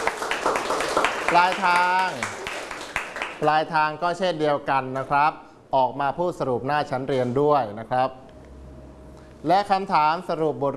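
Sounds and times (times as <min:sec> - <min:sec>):
classroom clapping for a classmate: 0:00.0 - 0:03.6
speech: 0:01.3 - 0:02.4, 0:03.4 - 0:08.2, 0:09.4 - 0:10.7.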